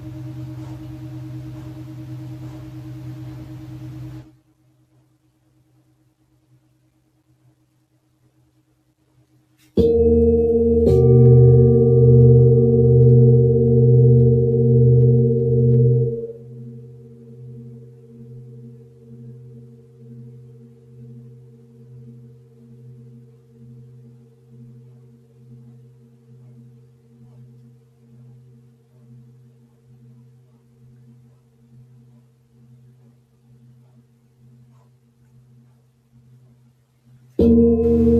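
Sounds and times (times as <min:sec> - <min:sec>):
Tibetan singing bowl ringing in a sound-healing session: 0:00.0 - 0:04.3, 0:09.8 - 0:27.4, 0:37.4 - 0:38.1.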